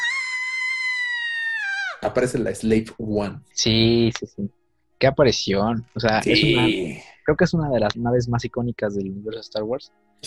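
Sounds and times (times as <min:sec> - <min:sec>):
person imitating a shrill scream: 0:00.0 - 0:02.0
speech: 0:02.0 - 0:10.2.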